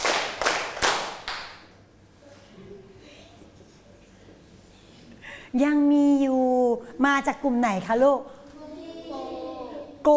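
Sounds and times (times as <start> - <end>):
children clapping hands: 0.0 - 1.6
speech: 5.5 - 6.3, 7.0 - 8.4.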